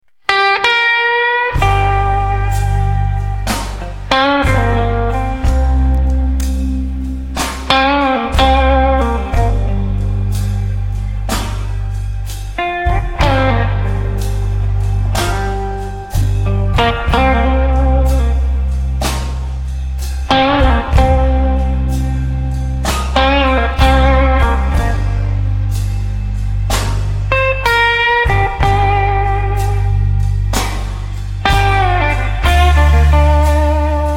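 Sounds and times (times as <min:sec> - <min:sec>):
blues music: 0:00.0 - 0:34.1.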